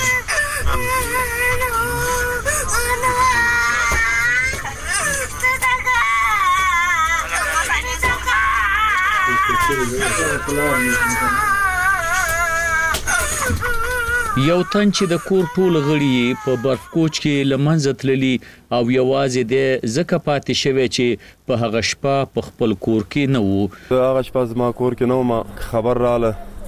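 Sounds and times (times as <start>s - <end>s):
young girl injured in an avalanche crying and screaming for her parents: 0.0s - 17.2s
speech: 10.4s - 11.5s, 14.4s - 26.5s.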